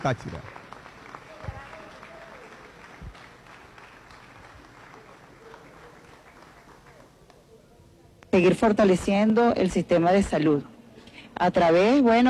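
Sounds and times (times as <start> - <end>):
speech: 0.0 - 0.6, 8.4 - 10.7, 11.4 - 12.2
crowd applause: 0.0 - 7.3.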